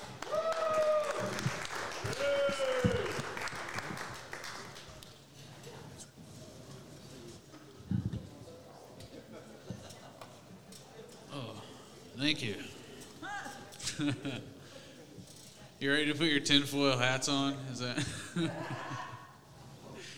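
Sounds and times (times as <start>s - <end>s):
audience applause at a comedy show: 0.0s - 5.2s
laughter: 9.2s - 10.6s, 13.7s - 14.7s, 18.0s - 19.4s
speech: 14.0s - 14.6s, 15.8s - 19.1s.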